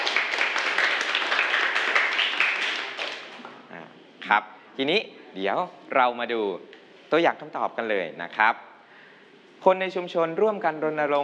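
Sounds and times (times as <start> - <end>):
applause for students: 0.0 - 3.5
speech: 4.3 - 8.7, 9.6 - 11.2.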